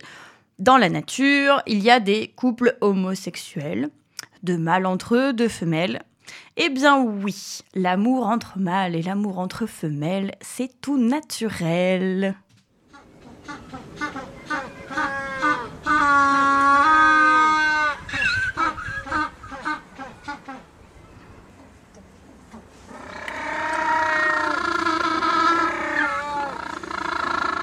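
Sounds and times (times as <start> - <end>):
speech: 0.6 - 12.4, 16.0 - 17.1
African penguin courtship braying calls: 12.9 - 20.7, 22.9 - 27.6.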